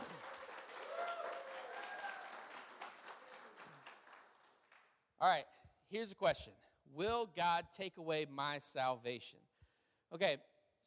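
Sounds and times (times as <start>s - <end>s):
faint cheers and whoops: 0.0s - 2.5s
audience applause: 0.0s - 4.9s
speech: 5.2s - 9.5s, 10.1s - 10.8s.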